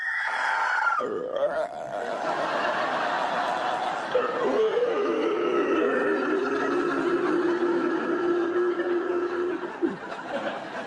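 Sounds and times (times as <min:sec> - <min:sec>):
voice imitating a zombie groan: 0:00.4 - 0:02.4, 0:03.6 - 0:09.9
laughter: 0:02.0 - 0:10.8.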